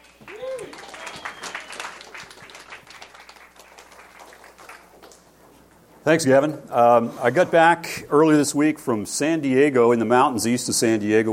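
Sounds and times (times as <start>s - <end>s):
audience applause welcoming a pastor: 0.0s - 5.3s
speech: 6.0s - 11.3s.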